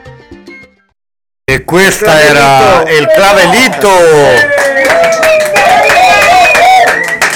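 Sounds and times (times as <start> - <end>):
speech: 1.5 - 5.6
audience clapping: 1.9 - 7.3
crowd cheering and whooping: 2.1 - 7.3.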